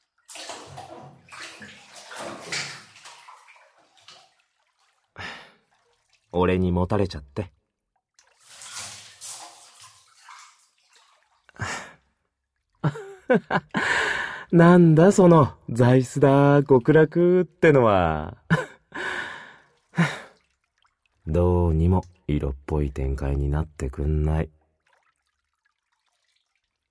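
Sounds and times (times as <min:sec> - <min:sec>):
bathtub water sloshing as someone gets in: 0:00.0 - 0:06.8, 0:07.6 - 0:15.3, 0:18.6 - 0:21.4, 0:24.7 - 0:26.8
speech: 0:06.4 - 0:07.6, 0:13.3 - 0:13.9, 0:14.5 - 0:18.4, 0:21.3 - 0:24.6.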